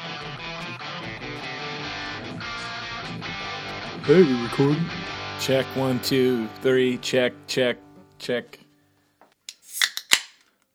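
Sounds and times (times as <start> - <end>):
speech: 4.0 - 8.6
beer can cracking open: 9.5 - 10.7.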